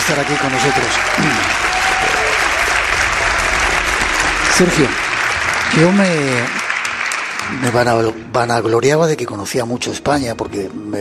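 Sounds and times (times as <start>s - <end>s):
crowd applauding: 0.0s - 8.4s
speech: 0.1s - 2.2s, 4.6s - 5.0s, 5.7s - 6.6s, 7.5s - 11.0s.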